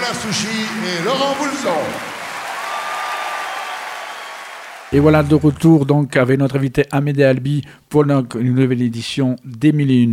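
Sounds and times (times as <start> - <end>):
audience applause: 0.0 - 5.6
speech: 0.1 - 2.1, 4.9 - 10.1.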